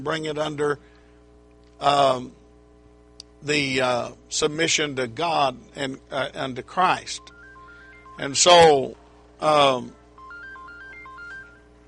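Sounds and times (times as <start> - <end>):
speech: 0.0 - 1.0, 1.8 - 2.4, 3.4 - 7.4, 8.2 - 10.0
mobile phone ringtone: 7.1 - 11.8.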